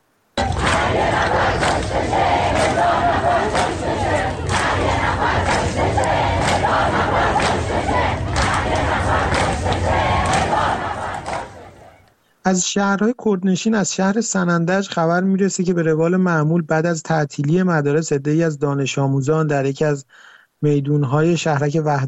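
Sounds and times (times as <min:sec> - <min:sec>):
large crowd chanting anti-government slogans at funeral: 0:00.4 - 0:12.1
speech: 0:12.5 - 0:22.0.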